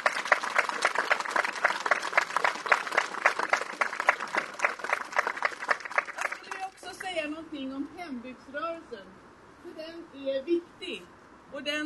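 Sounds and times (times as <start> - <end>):
audience applause: 0.0 - 7.1
speech: 8.4 - 11.8.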